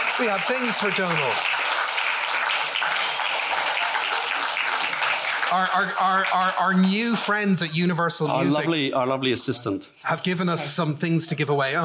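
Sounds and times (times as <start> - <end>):
audience round of applause: 0.0 - 7.8
speech: 0.2 - 1.6, 5.5 - 11.8.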